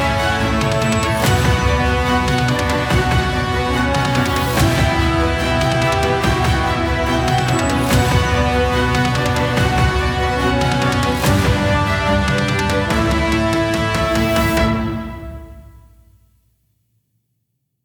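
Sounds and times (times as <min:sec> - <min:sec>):
epic hybrid underscore music: 0:00.0 - 0:16.2.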